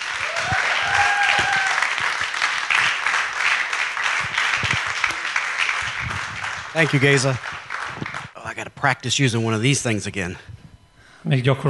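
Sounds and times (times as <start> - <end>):
church evening audience applauding a guest preacher: 0.0 - 8.4
speech: 6.8 - 7.6, 8.8 - 10.5, 11.2 - 11.6.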